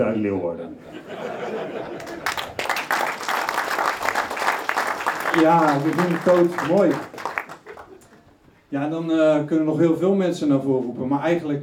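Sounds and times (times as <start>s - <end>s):
speech: 0.0s - 2.1s, 5.4s - 7.1s, 8.7s - 11.6s
laughter: 0.8s - 2.9s, 7.5s - 8.3s
crowd applause: 1.6s - 8.2s.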